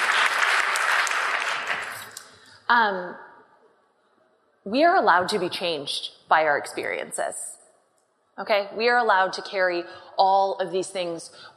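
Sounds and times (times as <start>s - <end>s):
round of applause: 0.0s - 2.2s
speech: 2.7s - 3.3s, 4.6s - 7.5s, 8.4s - 11.5s.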